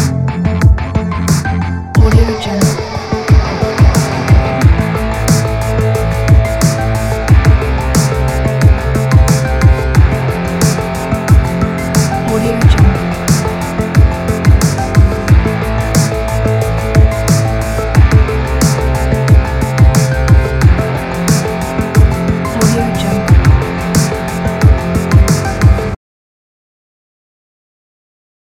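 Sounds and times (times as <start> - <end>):
80s synth wave music: 0.0 - 26.0.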